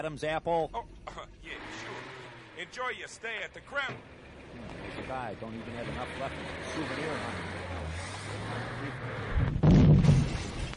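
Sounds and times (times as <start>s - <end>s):
speech: 0.0s - 1.0s, 2.6s - 10.2s
briefcase bomb exploding in a cab: 9.3s - 10.7s.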